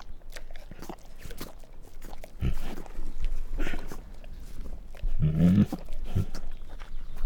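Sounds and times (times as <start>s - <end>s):
female Bengal tiger growling and snarling: 2.2s - 6.7s.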